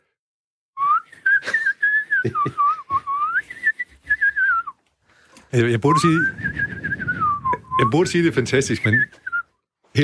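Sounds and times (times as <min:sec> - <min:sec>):
person whistling an imitation of a greenfinch song: 0:00.8 - 0:04.8, 0:05.9 - 0:08.0, 0:08.8 - 0:09.6
laughter: 0:01.4 - 0:04.0
speech: 0:02.2 - 0:02.7, 0:05.5 - 0:07.0, 0:07.8 - 0:09.2
breathy clicks: 0:03.5 - 0:05.6.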